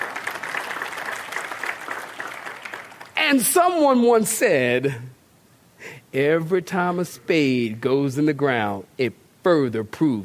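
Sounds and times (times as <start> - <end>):
crowd clapping hands: 0.0 - 3.6
speech: 3.3 - 5.2, 6.1 - 10.2.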